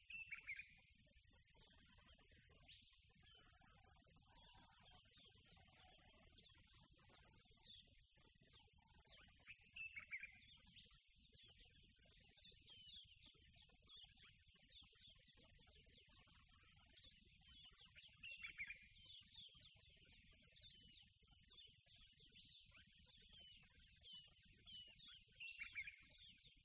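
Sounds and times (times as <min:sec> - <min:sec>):
quiet tropical birds in nature: 0:00.0 - 0:26.6.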